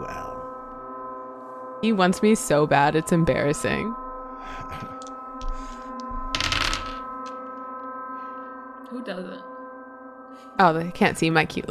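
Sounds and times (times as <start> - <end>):
speech: 1.8 - 4.9, 9.0 - 9.5, 10.6 - 11.6
dice rolling: 5.0 - 7.6.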